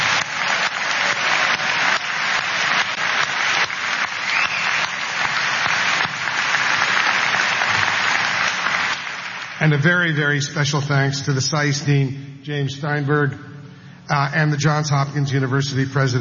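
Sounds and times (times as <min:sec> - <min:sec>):
audience applause: 0:00.0 - 0:09.9
speech: 0:09.7 - 0:13.5, 0:14.1 - 0:16.1.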